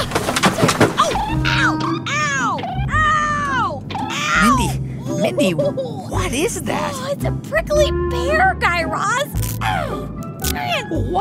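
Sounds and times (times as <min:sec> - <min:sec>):
knocks and clunks of an overhead luggage bin on a plane: 0:00.0 - 0:02.0
overhead luggage bin hatch creaking open on a plane: 0:00.0 - 0:04.7
speech: 0:05.4 - 0:11.1.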